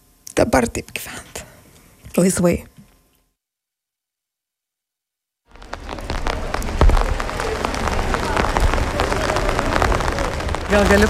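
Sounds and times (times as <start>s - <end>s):
speech: 0.5s - 1.4s, 2.1s - 2.7s, 10.7s - 11.0s
rain falling on Totorių street: 5.5s - 11.0s.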